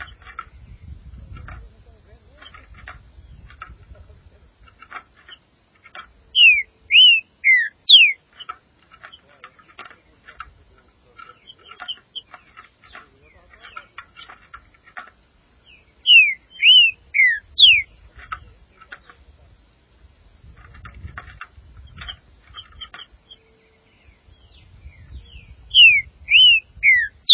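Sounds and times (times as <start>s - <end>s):
faint chirps and ticks: 0.0s - 27.3s
green-winged saltator singing whistled notes: 6.4s - 8.2s, 16.0s - 17.9s, 25.8s - 27.3s.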